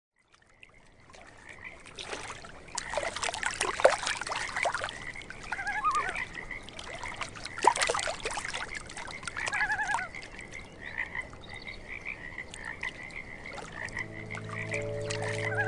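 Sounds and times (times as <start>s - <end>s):
soft lapping water: 0.3s - 15.6s
frogs calling in a steady chorus: 2.7s - 15.6s
loon wavering tremolo: 12.8s - 15.6s.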